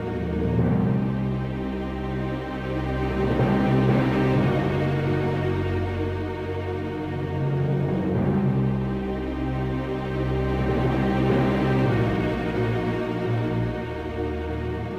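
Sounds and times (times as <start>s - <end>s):
tense fairy conversation music loop: 0.0s - 14.9s.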